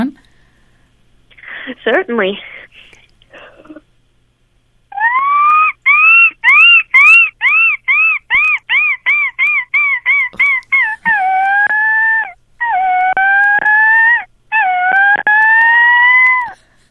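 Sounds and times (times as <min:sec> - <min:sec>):
speech: 0:01.7 - 0:02.6
person imitating a seagull call: 0:04.9 - 0:16.6.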